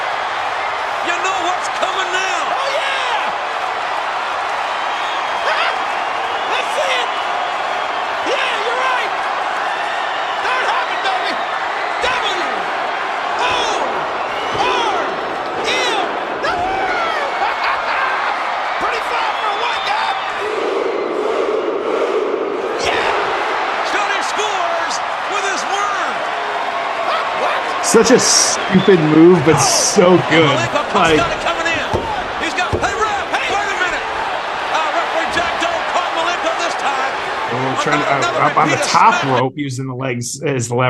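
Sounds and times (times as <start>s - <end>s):
wrestling crowd cheering: 0.0s - 39.6s
laughter: 16.9s - 19.0s, 27.4s - 31.8s, 34.8s - 39.5s
speech: 27.9s - 31.5s, 37.8s - 40.8s
thuds and slams from the wrestling ring: 31.0s - 34.2s.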